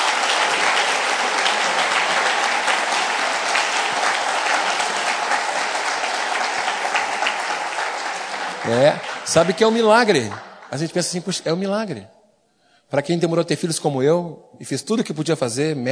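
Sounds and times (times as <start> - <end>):
audience applause: 0.0 - 11.3
speech: 8.7 - 12.2, 12.9 - 15.9.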